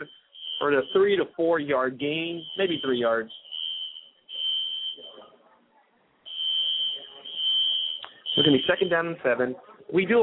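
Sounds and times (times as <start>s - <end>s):
fire alarm during a football game broadcast: 0.0s - 1.4s, 2.0s - 5.3s, 6.3s - 9.2s
speech: 0.6s - 3.4s, 8.4s - 10.2s.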